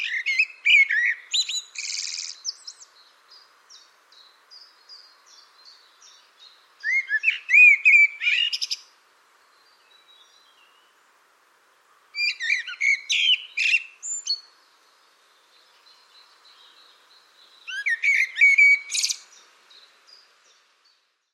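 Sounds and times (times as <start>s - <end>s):
bird calling: 0.0s - 2.9s, 6.8s - 8.9s, 12.2s - 14.5s, 16.0s - 19.5s.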